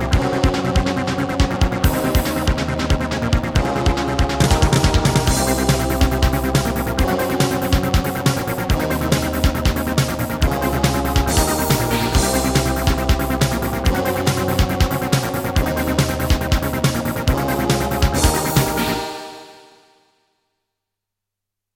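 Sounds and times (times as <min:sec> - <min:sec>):
Boss Dr. Synth DS-330 synthesizer: 0:00.0 - 0:20.0.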